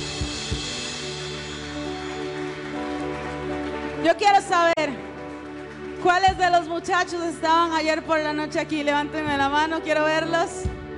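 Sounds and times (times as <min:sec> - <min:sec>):
audience clapping hands loudly: 0:00.0 - 0:07.6
speech: 0:04.0 - 0:05.1, 0:06.0 - 0:10.8.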